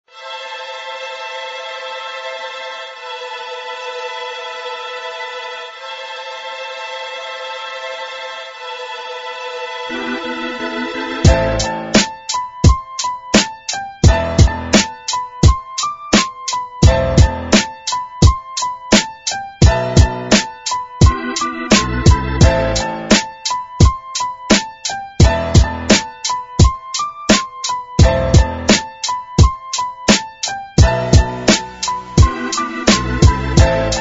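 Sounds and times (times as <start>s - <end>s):
instrumental music: 0.1s - 33.9s.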